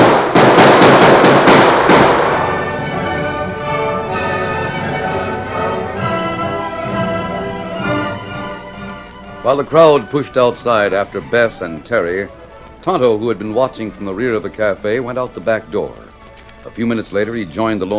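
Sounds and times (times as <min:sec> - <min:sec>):
gunshots fired at fleeing riders: 0:00.0 - 0:03.8
steady tonal wash: 0:01.8 - 0:17.9
speech: 0:09.5 - 0:17.9.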